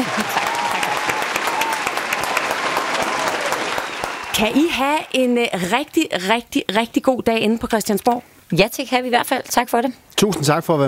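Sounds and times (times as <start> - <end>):
studio applause: 0.0 - 5.7
speech: 4.4 - 10.8.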